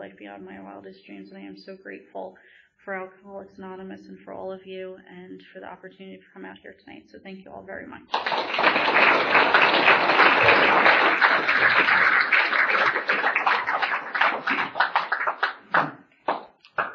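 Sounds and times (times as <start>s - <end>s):
speech: 0.0s - 11.8s
audience applause: 8.1s - 16.9s.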